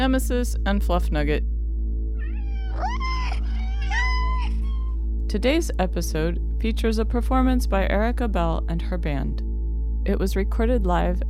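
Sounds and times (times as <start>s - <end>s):
speech: 0.0s - 1.6s, 5.3s - 9.4s, 10.1s - 11.2s
cat meowing: 2.2s - 5.0s.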